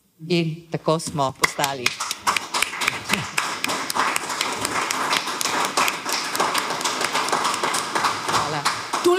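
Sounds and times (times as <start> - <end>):
speech: 0.2 - 2.1
audience applause for a director: 1.8 - 9.1.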